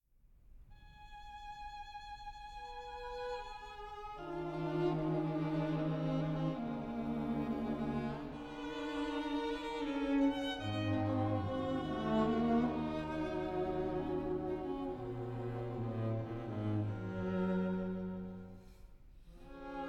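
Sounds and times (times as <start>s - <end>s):
string trio playing: 1.3s - 19.8s.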